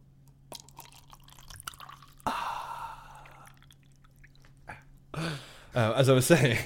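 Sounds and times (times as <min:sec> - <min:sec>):
drink being poured: 0:00.5 - 0:04.8
speech: 0:05.8 - 0:06.6.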